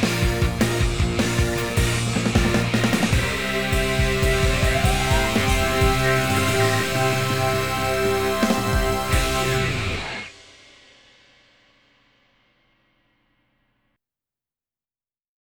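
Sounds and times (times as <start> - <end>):
rock backing track: 0.0 - 10.4.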